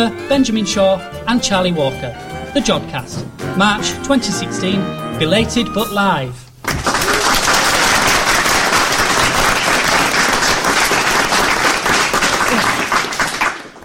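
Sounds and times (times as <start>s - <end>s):
speech: 0.0s - 6.8s
studio audience applauding at a live show: 6.6s - 13.8s.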